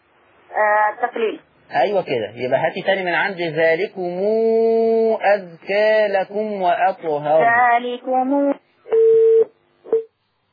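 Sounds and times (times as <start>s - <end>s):
speech: 0.6s - 8.6s
telephone line tone after a cut-off call: 8.9s - 10.1s.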